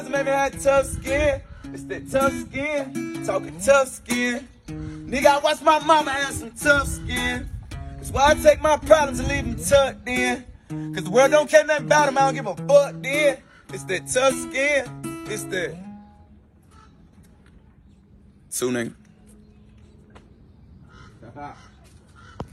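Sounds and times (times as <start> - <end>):
acoustic music: 0.0 - 17.3.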